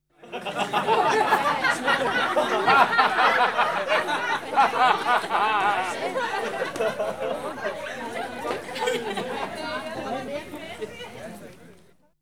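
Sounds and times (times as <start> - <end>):
joyful laughter: 0.2 - 9.9.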